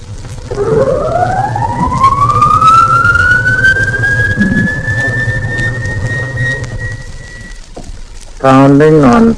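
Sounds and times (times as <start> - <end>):
constant low mechanical hum: 0.0 - 8.5
submarine collision alarm siren: 0.4 - 7.7
speech: 8.4 - 9.3.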